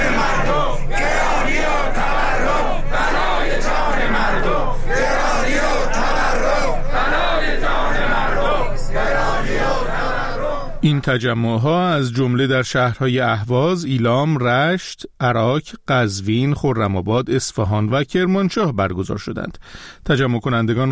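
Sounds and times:
protest rally crowd chanting a slogan: 0.0 - 10.8
speech: 11.0 - 20.9.

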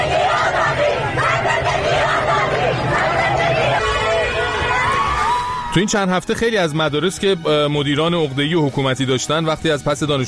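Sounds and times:
schoolchildren chanting a slogan on their way home: 0.0 - 5.1
speech: 5.8 - 10.2.

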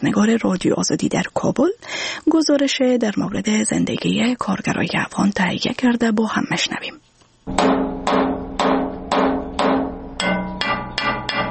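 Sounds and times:
speech: 0.0 - 7.9
blacksmith's hammer striking metal: 7.5 - 11.4.

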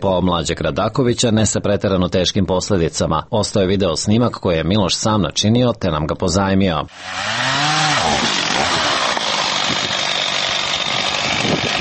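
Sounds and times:
speech: 0.0 - 7.7
chainsaw roaring while cutting an apricot tree: 6.9 - 11.7.

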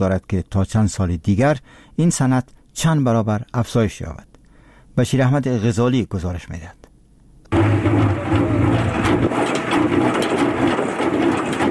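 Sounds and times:
speech: 0.0 - 4.3, 5.0 - 6.8
honey extractor machine running: 7.5 - 11.6.

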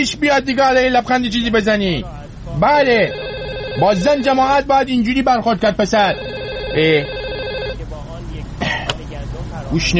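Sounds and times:
speech: 0.0 - 3.2, 3.8 - 7.2, 9.7 - 9.9
telephone ringing with electronic trill: 2.8 - 4.6, 5.8 - 7.8.

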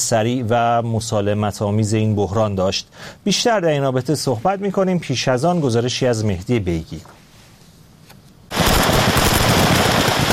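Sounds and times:
speech: 0.1 - 7.2
gunfire exchange: 8.5 - 10.3.

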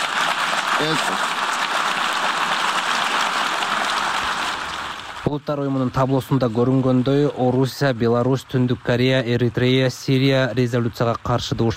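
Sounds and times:
diplomats applauding in the UN General Assembly hall after a vote: 0.0 - 5.4
speech: 0.8 - 1.4, 5.3 - 11.7.

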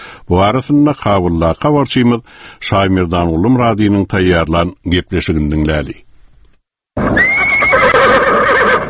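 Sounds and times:
speech: 0.3 - 6.0
horse whinnying at Afghan president Hamid Karzai's stable: 7.0 - 8.8.

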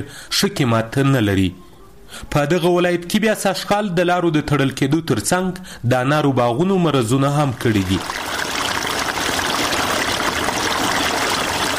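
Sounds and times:
speech: 0.0 - 8.2
water flowing while irrigating a pomegranate orchard in the Spitkhar area near Tarinkot: 7.4 - 11.7.

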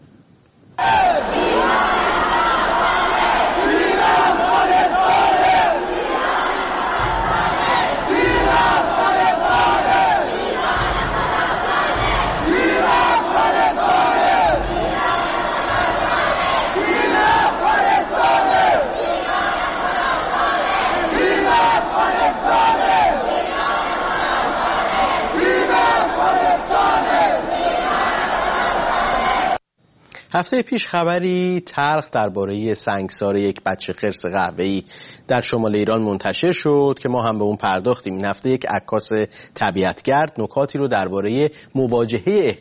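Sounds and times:
Afghan stadium fans chanting led by a female cheerleader: 0.8 - 29.6
speech: 30.4 - 42.5.

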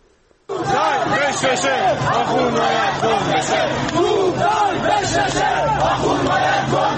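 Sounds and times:
protesters chanting anti-government slogans in Qom: 0.5 - 6.9.

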